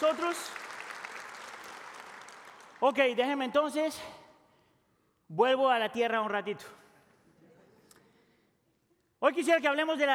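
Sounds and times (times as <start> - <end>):
speech: 0.0 - 0.7, 2.8 - 4.2, 5.3 - 6.8, 9.2 - 10.1
audience applause: 0.0 - 2.8.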